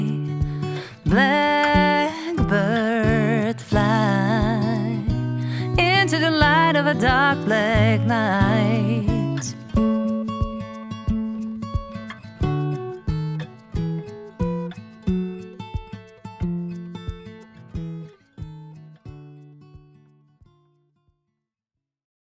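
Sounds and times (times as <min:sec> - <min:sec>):
music duo playing light lounge: 0:00.0 - 0:16.0.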